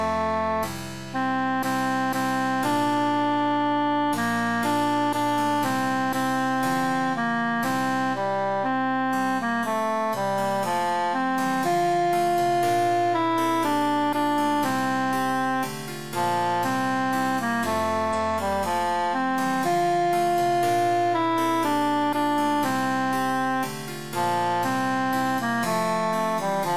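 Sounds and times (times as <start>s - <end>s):
emphasized alto voice: 0.0s - 26.7s.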